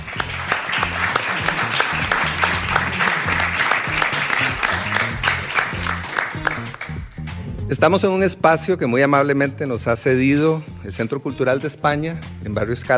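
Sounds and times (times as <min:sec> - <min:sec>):
audience applause: 0:00.0 - 0:06.9
speech: 0:07.7 - 0:12.9.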